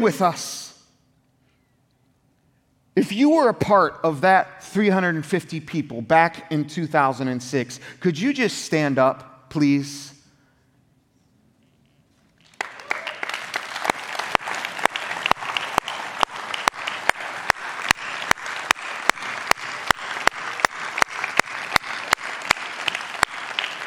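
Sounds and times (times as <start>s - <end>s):
speech: 0.0s - 0.6s, 3.0s - 10.1s
audience applause: 12.4s - 23.8s.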